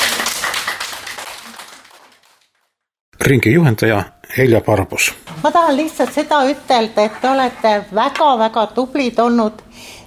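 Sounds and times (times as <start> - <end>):
audience applause: 0.0 - 2.6
speech: 3.2 - 10.0.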